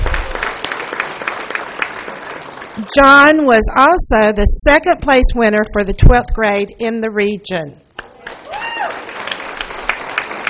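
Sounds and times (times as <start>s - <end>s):
audience applause: 0.0s - 2.8s, 8.0s - 10.4s
speech: 2.8s - 7.8s.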